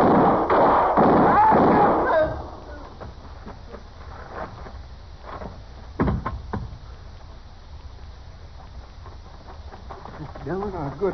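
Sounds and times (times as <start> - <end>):
gunshot in a Western gunfight drama: 0.0 - 2.5
people shouting in a Western gunfight drama: 1.2 - 2.5.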